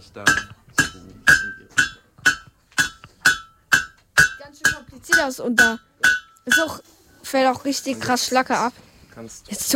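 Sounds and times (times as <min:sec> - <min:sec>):
speech: 0:00.0 - 0:01.1, 0:05.1 - 0:09.7
hammer striking hot metal: 0:00.2 - 0:06.8.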